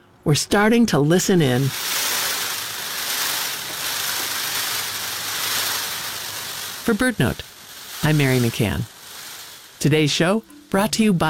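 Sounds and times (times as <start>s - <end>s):
peacock train rattle: 0.0s - 11.2s
speech: 0.3s - 2.1s, 6.9s - 8.9s, 9.8s - 11.2s.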